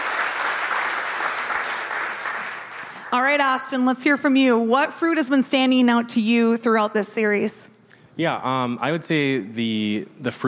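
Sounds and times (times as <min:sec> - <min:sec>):
audience clapping: 0:00.0 - 0:03.4
speech: 0:03.1 - 0:10.4.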